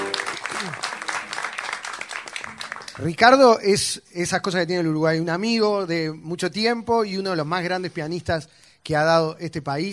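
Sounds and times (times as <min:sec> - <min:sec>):
audience applause for a jazz piano trio: 0:00.0 - 0:03.1
speech: 0:03.0 - 0:09.9.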